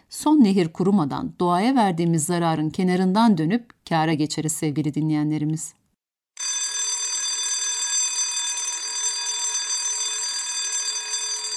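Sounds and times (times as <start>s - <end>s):
speech: 0.1s - 5.8s
bell ringing: 6.4s - 11.5s.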